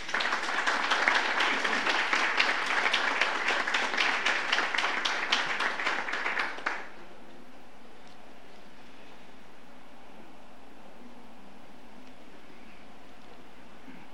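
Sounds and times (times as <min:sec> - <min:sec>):
audience applause: 0:00.0 - 0:07.0.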